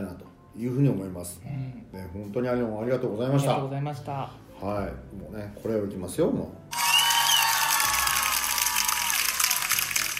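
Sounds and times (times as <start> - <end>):
speech: 0.6 - 6.6
audience applause and cheering played on a radio programme: 6.7 - 10.1.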